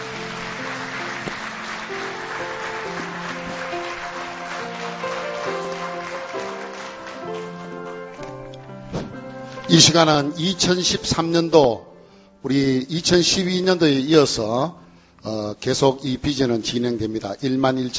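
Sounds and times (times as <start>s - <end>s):
audience applauding: 0.0s - 10.8s
speech: 9.7s - 17.9s.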